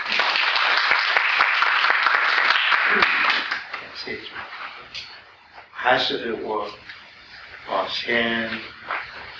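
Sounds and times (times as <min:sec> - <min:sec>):
audience applause: 0:00.0 - 0:04.0
speech: 0:05.9 - 0:06.8, 0:07.8 - 0:08.8.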